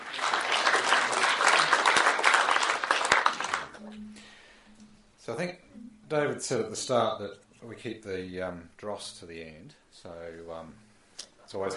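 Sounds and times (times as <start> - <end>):
audience applause greeting a speaker at a banking talk: 0.0 - 3.8
speech: 5.3 - 10.8, 11.5 - 11.7.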